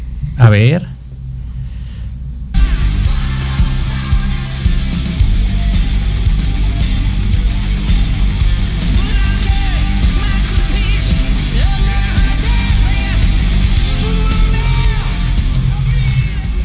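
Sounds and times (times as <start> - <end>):
speech: 0.4 - 1.0
loud dense rock song: 2.6 - 16.6.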